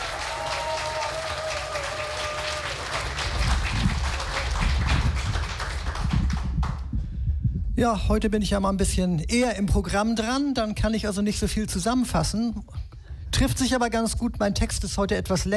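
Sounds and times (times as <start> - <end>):
audience applause: 0.0 - 6.9
speech: 7.8 - 12.8, 13.4 - 15.5.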